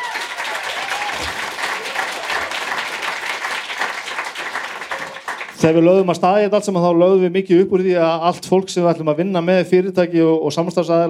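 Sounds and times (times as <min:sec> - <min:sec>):
audience applauding and cheering: 0:00.0 - 0:05.8
speech: 0:05.6 - 0:11.0.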